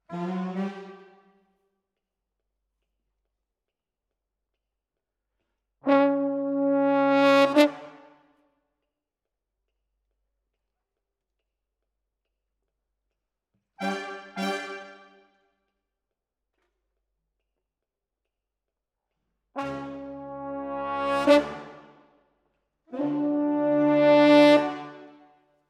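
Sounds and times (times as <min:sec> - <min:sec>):
horns: 0:00.0 - 0:01.2, 0:05.8 - 0:08.1, 0:13.8 - 0:15.2, 0:19.6 - 0:22.1, 0:22.9 - 0:25.2.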